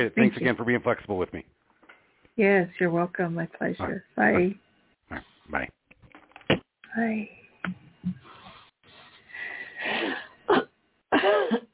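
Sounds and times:
speech: 0:00.0 - 0:01.6, 0:02.4 - 0:05.8, 0:07.0 - 0:08.2
person coughing on the air: 0:09.9 - 0:11.7
person clearing throat: 0:10.5 - 0:11.7.

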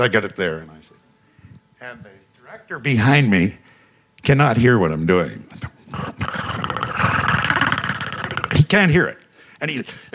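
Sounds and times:
speech: 0:00.0 - 0:01.0, 0:01.8 - 0:03.6, 0:04.2 - 0:06.7, 0:08.7 - 0:10.1
person imitating a monster's growl with their voice: 0:05.9 - 0:08.7.

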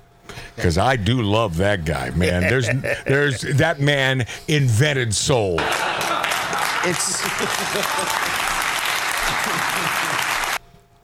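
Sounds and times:
speech: 0:00.6 - 0:06.0, 0:06.8 - 0:08.4, 0:09.3 - 0:10.3
laughter: 0:02.0 - 0:03.8, 0:05.6 - 0:10.6
applause: 0:05.6 - 0:10.6.

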